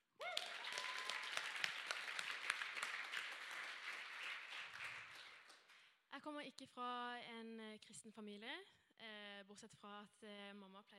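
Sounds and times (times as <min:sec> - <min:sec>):
audience applause: 0:00.2 - 0:05.7
speech: 0:06.2 - 0:10.9.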